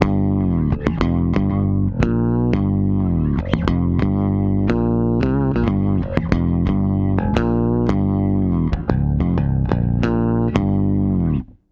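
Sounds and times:
bass: 0:00.0 - 0:11.6.

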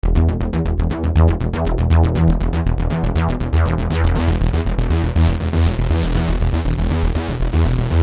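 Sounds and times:
techno synth bass loop in E: 0:00.0 - 0:08.0.

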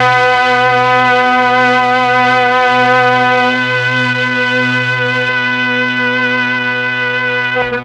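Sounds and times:
Mellotron M400 strings: 0:00.0 - 0:07.8.

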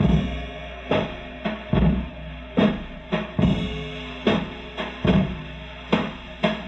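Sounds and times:
classic drum machine rhythm loop: 0:00.0 - 0:06.6.

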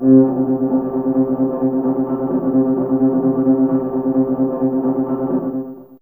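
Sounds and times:
Fairlight CMI IIe violin tremolo: 0:00.0 - 0:05.8.

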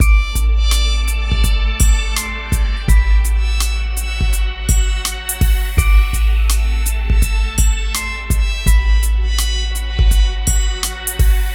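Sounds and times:
hip hop and R&B drum loops: 0:00.0 - 0:11.5.

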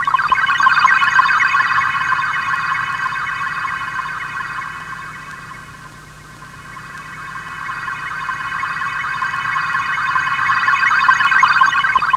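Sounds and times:
sci-fi space sound: 0:00.0 - 0:12.1.

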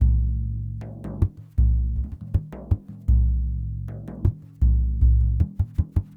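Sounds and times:
large frame drum: 0:00.0 - 0:06.1.

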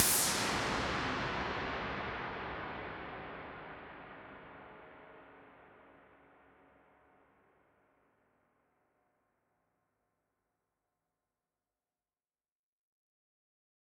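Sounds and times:
reverberant noise decays: 0:00.0 - 0:03.9.

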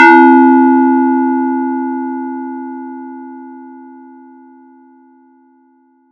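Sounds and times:
random bell sound effect: 0:00.0 - 0:02.1.

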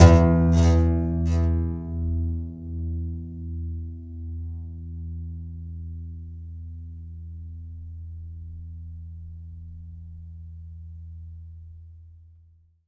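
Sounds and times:
contrabass balalaika plucked strings: 0:00.0 - 0:05.6.

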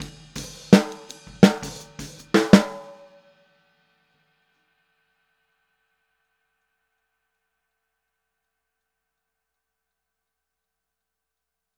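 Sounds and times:
boogaloo outro snare drum: 0:00.0 - 0:03.1.

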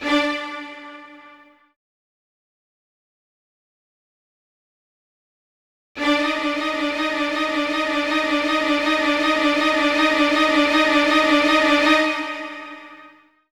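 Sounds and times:
Q string sound: 0:00.0 - 0:01.6, 0:06.0 - 0:13.2.

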